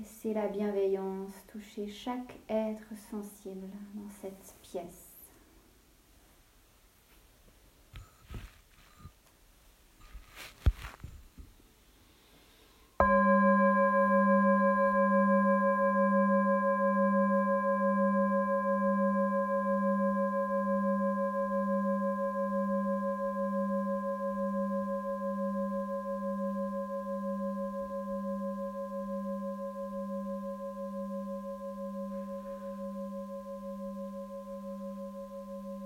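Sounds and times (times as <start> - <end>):
speech: 0.2 - 5.0
faint rustling: 6.2 - 9.4, 10.0 - 12.9
meditation bell ringing: 13.0 - 35.8.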